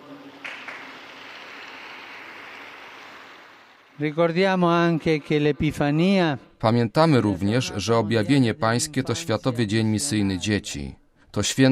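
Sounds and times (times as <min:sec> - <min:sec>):
crowd applause: 0:00.0 - 0:06.2
speech: 0:04.0 - 0:11.6.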